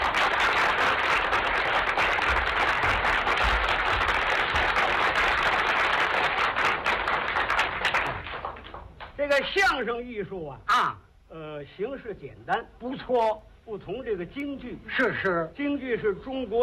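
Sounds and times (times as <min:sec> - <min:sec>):
audience applause: 0:00.0 - 0:08.9
speech: 0:09.4 - 0:16.6.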